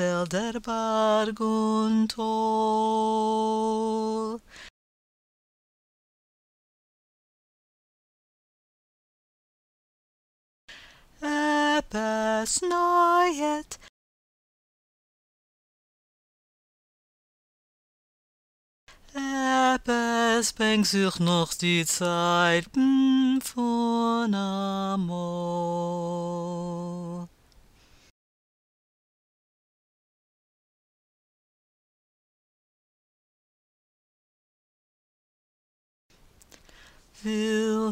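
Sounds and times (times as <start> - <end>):
tenor singing verses and refrain: 0.0 - 4.4, 11.2 - 13.8, 19.1 - 27.3, 37.2 - 37.8.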